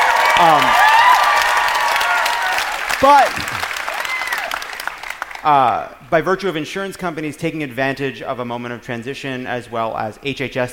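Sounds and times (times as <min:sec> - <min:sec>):
audience applause: 0:00.0 - 0:05.7
speech: 0:00.4 - 0:00.9, 0:03.0 - 0:03.6, 0:05.4 - 0:10.7.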